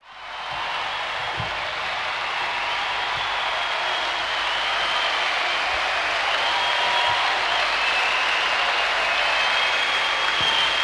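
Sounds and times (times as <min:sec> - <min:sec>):
applause: 0:00.0 - 0:10.8.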